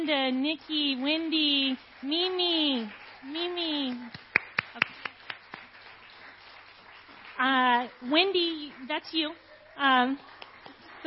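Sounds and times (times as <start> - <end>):
speech: 0.1 - 4.2, 7.4 - 10.3
hand claps for event committee members: 1.8 - 9.5, 10.1 - 11.0.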